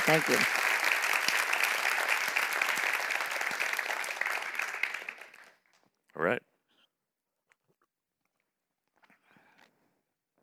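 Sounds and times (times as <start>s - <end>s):
audience applause: 0.0s - 5.6s
speech: 0.1s - 0.6s, 6.2s - 6.5s.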